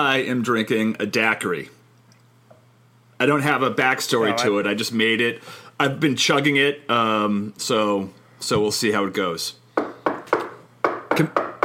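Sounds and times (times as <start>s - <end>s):
speech: 0.0s - 1.8s, 3.2s - 9.6s, 11.2s - 11.4s
knocking at the door: 9.8s - 11.6s.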